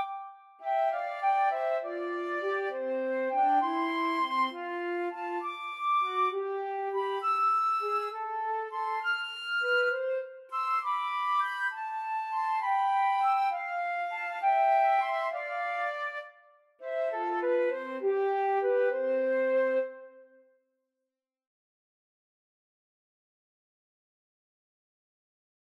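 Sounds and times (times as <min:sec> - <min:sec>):
flute trio playing: 0:00.0 - 0:16.3, 0:16.9 - 0:20.1.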